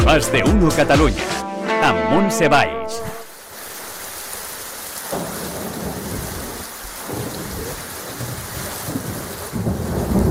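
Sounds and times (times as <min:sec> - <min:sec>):
speech: 0:00.1 - 0:03.1
rain: 0:03.3 - 0:10.3
thunder: 0:05.1 - 0:10.3.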